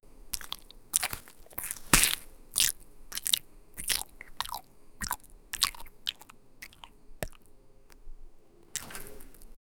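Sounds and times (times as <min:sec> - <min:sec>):
chewing: 0:00.3 - 0:08.1.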